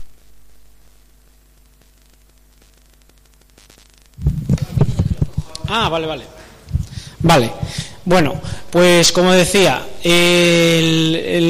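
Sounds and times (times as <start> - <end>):
faint electrical hum and static of a microphone being switched on: 0.0 - 11.4
loud low thumping microphone handling noise: 3.7 - 8.7
speech: 5.7 - 6.4, 7.2 - 11.4.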